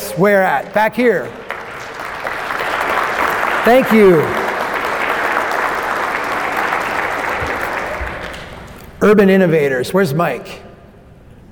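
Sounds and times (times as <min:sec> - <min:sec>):
speech: 0:00.2 - 0:01.4, 0:03.6 - 0:04.4, 0:09.0 - 0:10.6
audience clapping: 0:00.2 - 0:09.0.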